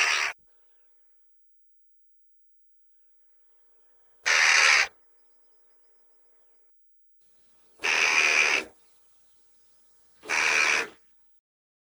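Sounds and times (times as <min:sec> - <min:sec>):
grey crow calling: 0:00.0 - 0:00.4, 0:04.3 - 0:04.9, 0:07.8 - 0:08.7, 0:10.2 - 0:11.0.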